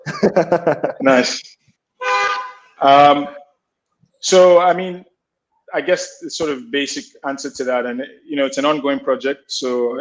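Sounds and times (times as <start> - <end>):
laughter: 0.0 - 1.4
speech: 0.1 - 1.6, 2.8 - 3.4, 4.2 - 5.1, 5.7 - 10.0
car alarm horn blasts: 2.0 - 2.8.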